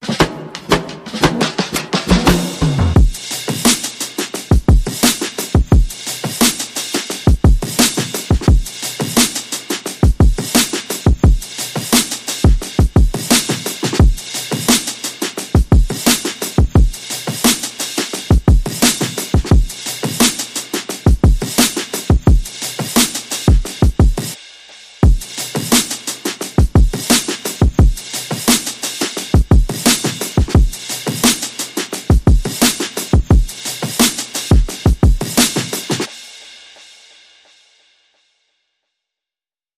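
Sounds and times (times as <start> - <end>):
hip hop beat: 0.0 - 36.4.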